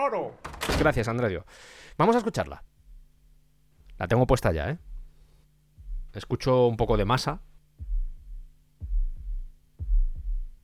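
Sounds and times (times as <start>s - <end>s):
speech: 0.0s - 2.7s, 4.0s - 4.9s, 6.1s - 7.5s
heartbeat sound effect at 60 beats per minute: 2.6s - 10.6s.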